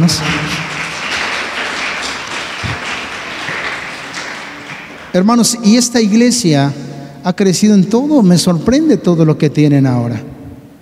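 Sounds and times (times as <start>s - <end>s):
speech: 0.0s - 0.7s, 5.2s - 10.3s
audience applause: 0.0s - 5.6s.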